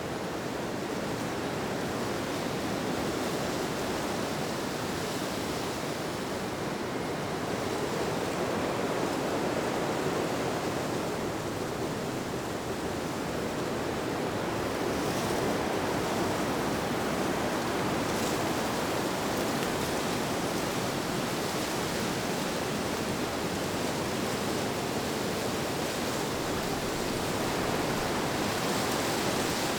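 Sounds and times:
wind through leaves: 0.0s - 29.7s.

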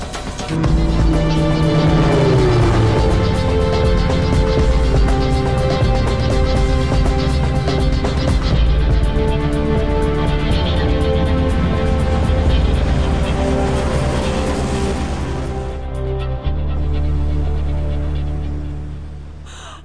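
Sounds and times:
airplane engine roar in a low flyby: 0.1s - 19.4s.

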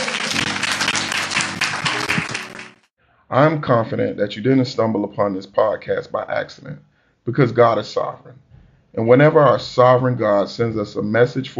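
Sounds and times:
congregation hand clapping: 0.0s - 2.9s
speech: 3.3s - 11.5s.

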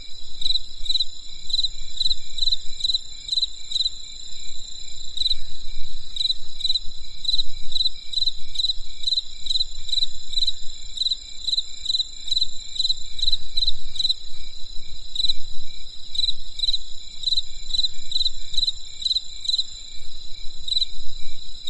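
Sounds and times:
cricket chirping: 0.0s - 21.6s
high-pitched insect hum: 0.0s - 21.6s.

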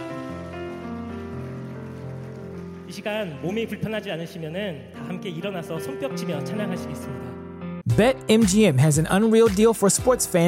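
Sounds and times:
audience applause: 0.0s - 3.4s
speech: 2.9s - 7.4s, 8.0s - 10.4s.

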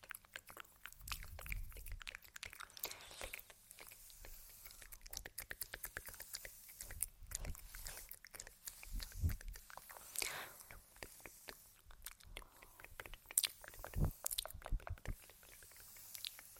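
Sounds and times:
mouth sounds with wet clicks and smacks: 0.0s - 16.5s.

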